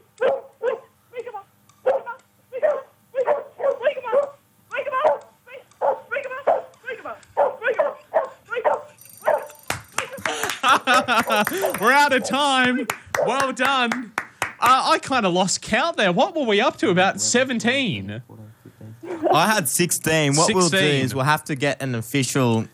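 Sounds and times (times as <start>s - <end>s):
dog barking in a radio breakfast show barking contest: 0.2s - 0.9s, 1.8s - 10.2s
laughter: 9.9s - 13.3s
speech: 11.1s - 18.3s, 19.3s - 22.7s.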